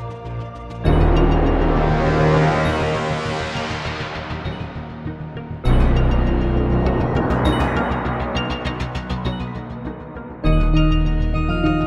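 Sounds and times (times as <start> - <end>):
fast intense synth: 0.9 - 11.6.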